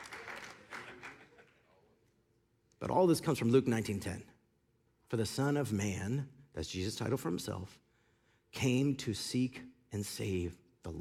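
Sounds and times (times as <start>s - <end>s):
audience clapping: 0.0s - 1.7s
speech: 2.8s - 4.4s, 5.1s - 7.8s, 8.5s - 10.9s.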